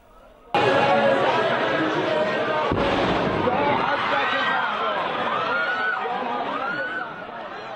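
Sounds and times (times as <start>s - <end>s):
crowd screaming and shouting in panic: 0.6s - 7.7s
loud explosion blast: 2.6s - 4.4s.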